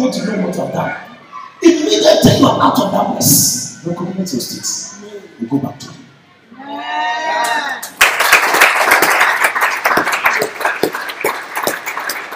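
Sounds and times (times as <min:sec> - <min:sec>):
speech: 0:00.0 - 0:06.0
audience clapping: 0:07.8 - 0:12.3.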